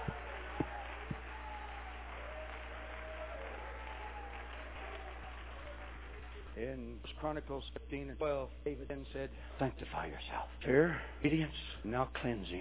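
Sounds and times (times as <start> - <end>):
audience clapping: 0.0 - 7.1
speech: 6.6 - 12.5.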